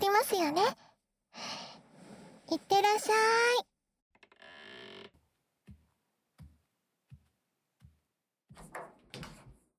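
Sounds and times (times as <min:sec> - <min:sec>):
speech: 0:00.2 - 0:00.8, 0:02.6 - 0:03.7
door opening and closing: 0:04.2 - 0:05.2, 0:08.5 - 0:09.6.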